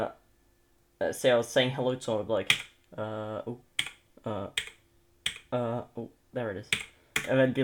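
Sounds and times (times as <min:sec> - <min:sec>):
speech: 0:00.0 - 0:00.2, 0:01.0 - 0:04.8, 0:05.5 - 0:07.6
keystrokes on a computer keyboard: 0:02.5 - 0:02.8, 0:03.8 - 0:04.0, 0:04.6 - 0:05.5, 0:06.7 - 0:07.4.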